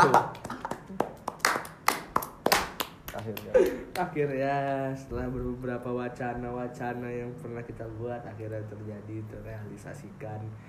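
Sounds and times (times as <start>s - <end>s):
speech: 0.0s - 0.4s, 3.2s - 10.6s
sparse audience claps: 0.0s - 4.2s.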